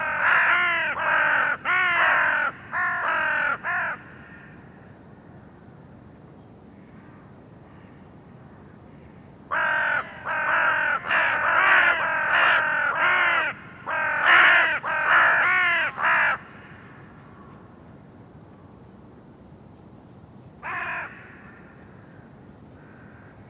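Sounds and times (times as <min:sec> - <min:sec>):
bird giving harsh caws: 0:00.0 - 0:04.8, 0:09.0 - 0:17.6, 0:20.6 - 0:23.4.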